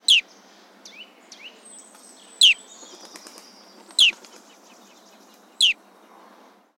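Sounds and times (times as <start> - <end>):
bearded reedling calls: 0.0 - 3.0, 3.8 - 4.2, 5.6 - 5.8.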